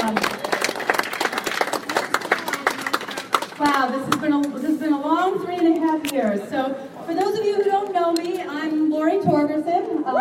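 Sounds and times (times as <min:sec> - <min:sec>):
audience applause: 0:00.0 - 0:03.8
faint crowd voices: 0:00.0 - 0:10.2.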